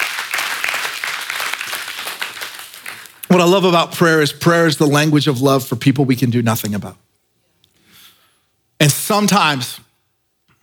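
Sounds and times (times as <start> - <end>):
audience clapping: 0.0 - 3.6
speech: 3.3 - 7.1, 8.8 - 9.8.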